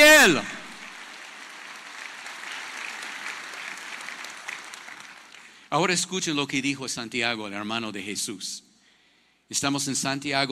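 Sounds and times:
audience applause: 0.0 - 5.7
speech: 0.2 - 0.6, 5.7 - 8.7, 9.5 - 10.5.

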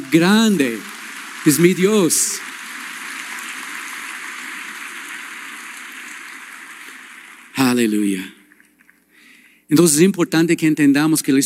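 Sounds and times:
audience applauding: 0.0 - 8.1
speech: 0.1 - 2.5, 7.7 - 8.4, 9.7 - 11.4.

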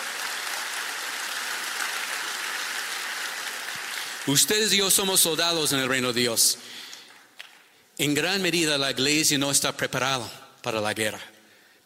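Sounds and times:
audience applause: 0.0 - 4.4
speech: 4.2 - 6.8, 8.0 - 11.3.

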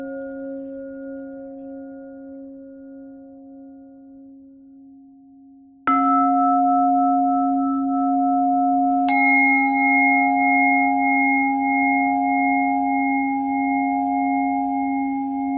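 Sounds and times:
bells ringing: 5.9 - 15.5.

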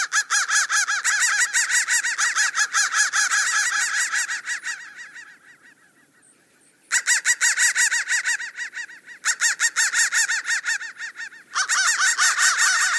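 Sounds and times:
crows cawing: 0.0 - 12.9.

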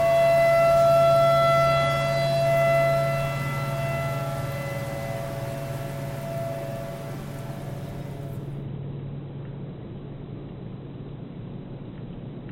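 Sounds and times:
tornado siren: 0.0 - 8.7.

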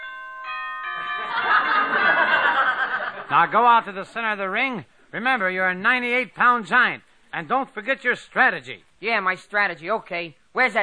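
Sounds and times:
boxing bell starting the first round: 0.0 - 3.1
crowd noise and chuckling: 1.0 - 3.6
speech: 3.3 - 10.8.

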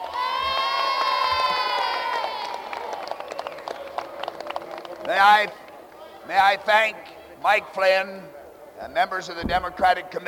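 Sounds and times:
audience applause: 0.0 - 6.1
speech: 5.1 - 5.6, 6.2 - 10.2.

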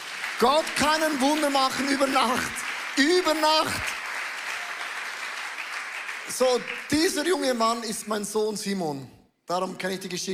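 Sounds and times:
crowd applause: 0.0 - 7.6
speech: 0.4 - 3.9, 6.3 - 10.3.

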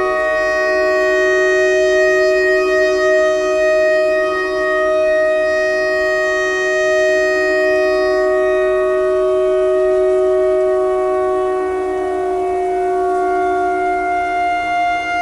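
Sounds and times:
clarinet notes in E pentatonic: 0.0 - 15.1
tornado siren: 0.0 - 15.1.

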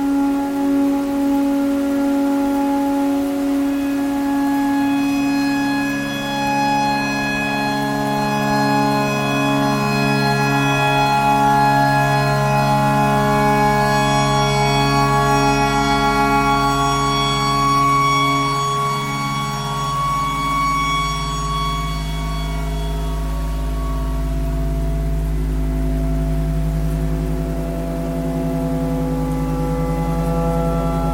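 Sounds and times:
clarinet playing pentatonic: 0.0 - 31.1
tornado siren: 0.0 - 31.1.

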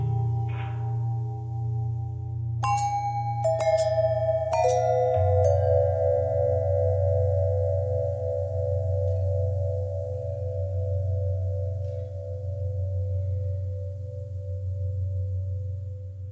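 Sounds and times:
long bell with twisting pitch bend: 0.0 - 16.2.

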